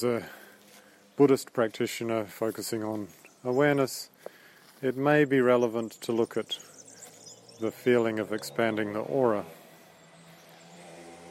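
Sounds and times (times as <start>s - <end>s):
speech: 0.0s - 0.4s, 1.2s - 6.7s, 7.6s - 9.6s
motorbike passing: 6.5s - 11.2s.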